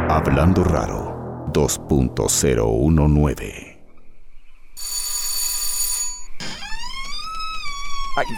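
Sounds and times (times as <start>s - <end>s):
speech: 0.1s - 3.7s, 8.2s - 8.3s
doorbell ringing: 4.8s - 6.4s.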